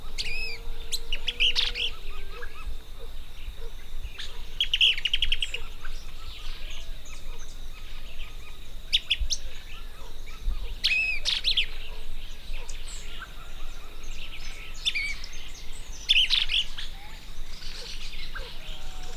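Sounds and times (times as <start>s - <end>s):
tuque pium bird call: 0.1s - 19.1s.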